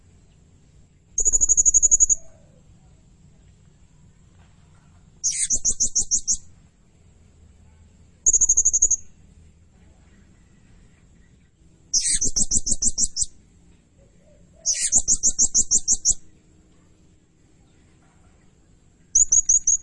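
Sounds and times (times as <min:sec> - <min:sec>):
blue-crowned hanging parrot giving shrill high chirps: 0:01.2 - 0:02.4, 0:05.2 - 0:06.5, 0:08.2 - 0:09.2, 0:11.9 - 0:13.4, 0:14.6 - 0:16.3, 0:19.1 - 0:19.8.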